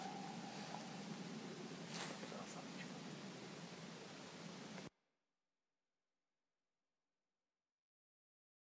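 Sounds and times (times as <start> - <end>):
owl hooting: 0.0 - 4.8.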